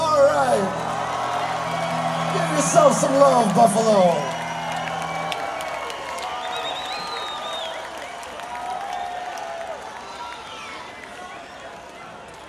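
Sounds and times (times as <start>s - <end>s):
concert crowd yelling and cheering: 0.0s - 12.4s
speech: 2.6s - 4.3s
whistles from concert crowd: 4.2s - 8.3s.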